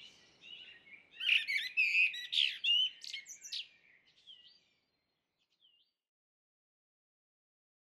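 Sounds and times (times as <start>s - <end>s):
common blackbird singing fluty notes and high squeaks: 0.0s - 5.9s.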